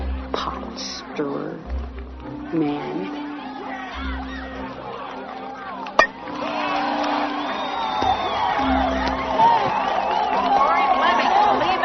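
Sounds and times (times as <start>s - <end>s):
speech: 0.8s - 1.8s, 2.5s - 3.2s
audience cheering and whooping: 3.3s - 11.8s.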